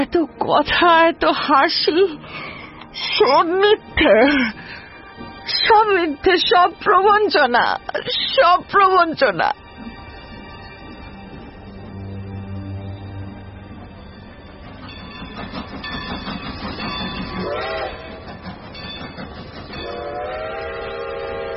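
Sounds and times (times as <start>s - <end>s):
speech: 0.0s - 9.6s
goods train rumbling into a station platform: 0.0s - 21.5s
goods train horn: 17.3s - 18.4s, 19.8s - 21.5s.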